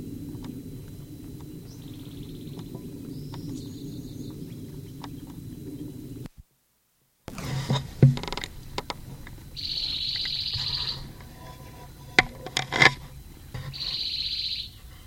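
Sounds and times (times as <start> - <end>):
bird calling from a live oak: 0.0 - 6.3, 7.3 - 15.0
low steady rumble: 0.0 - 6.4, 7.3 - 15.0.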